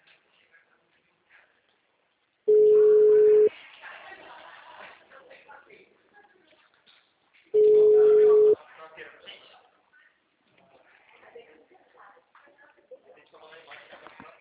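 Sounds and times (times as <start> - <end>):
telephone line tone while a call is placed: 2.5 - 3.5, 7.6 - 8.6.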